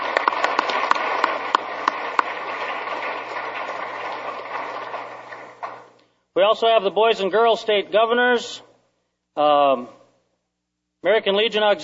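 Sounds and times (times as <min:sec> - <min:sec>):
round of applause: 0:00.0 - 0:06.0
speech: 0:06.4 - 0:08.7, 0:09.4 - 0:10.0, 0:11.0 - 0:11.8.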